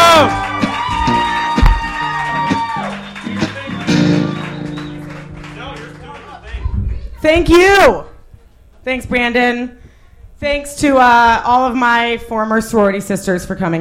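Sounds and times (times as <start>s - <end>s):
crowd cheering and whooping: 0.0s - 6.8s
scattered clapping: 0.2s - 6.6s
speech: 7.3s - 8.1s, 8.8s - 9.8s, 10.4s - 13.7s.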